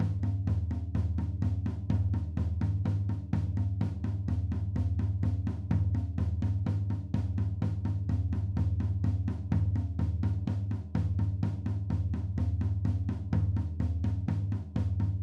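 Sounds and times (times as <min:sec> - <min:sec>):
gym drum beat: 0:00.0 - 0:15.2.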